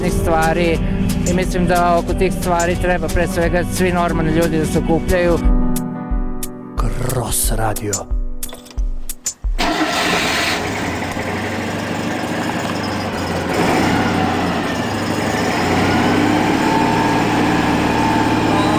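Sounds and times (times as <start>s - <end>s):
speech: 0.0s - 5.6s, 7.0s - 8.2s
Citroën 2CV engines revving in garage: 9.6s - 18.7s.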